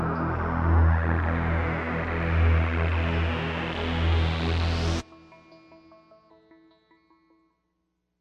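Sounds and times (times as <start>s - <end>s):
low synth pad in E: 0.0s - 5.0s.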